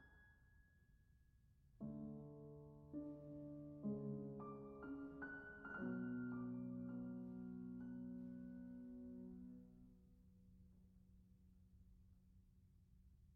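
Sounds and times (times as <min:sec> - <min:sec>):
piano folk dance music: 0:01.8 - 0:09.8.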